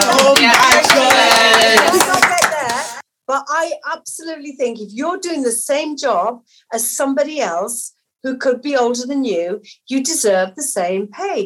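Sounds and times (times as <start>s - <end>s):
clapping: 0.0s - 3.0s
speech: 0.4s - 0.7s, 3.4s - 11.4s.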